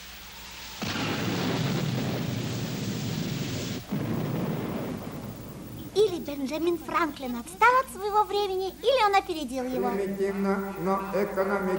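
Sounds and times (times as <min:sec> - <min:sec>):
crash and rumble of thunder from a thunderstorm: 0:00.8 - 0:07.1
speech: 0:06.2 - 0:11.7.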